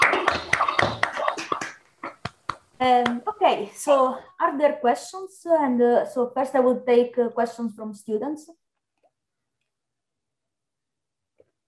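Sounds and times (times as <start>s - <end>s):
online audience clapping hands: 0.0s - 3.3s
speech: 2.8s - 8.6s.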